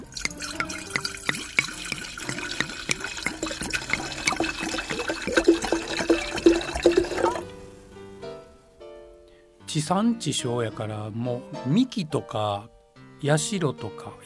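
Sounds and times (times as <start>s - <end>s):
sake being poured into cups: 0.0s - 7.5s
speech: 9.8s - 14.2s.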